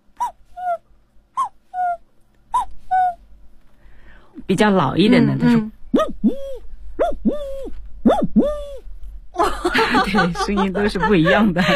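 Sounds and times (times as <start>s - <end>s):
jaw harp imitating a young cuckoo call: 0.2s - 0.8s, 1.4s - 3.2s, 6.0s - 8.8s
speech: 4.5s - 5.8s, 10.1s - 11.7s
laughter: 9.4s - 11.7s.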